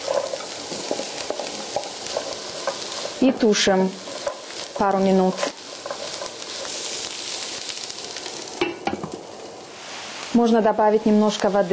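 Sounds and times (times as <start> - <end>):
utensil scraping and clinking against a pan: 0.0 - 7.6
vegan sausages sizzling in a frying pan: 0.0 - 11.7
speech: 3.2 - 4.0, 4.8 - 5.5, 10.4 - 11.7.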